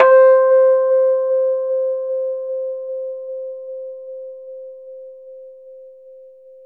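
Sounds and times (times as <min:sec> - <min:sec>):
Rhodes 73 electric piano, slow, in C: 0:00.0 - 0:02.6.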